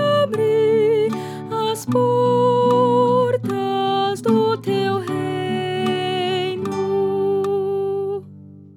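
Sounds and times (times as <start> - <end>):
soprano singing: 0.0 - 8.6.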